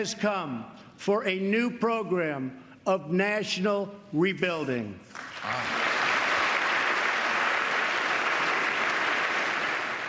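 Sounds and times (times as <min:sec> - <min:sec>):
speech: 0:00.0 - 0:05.8
audience applause at State of the Union: 0:05.2 - 0:10.0.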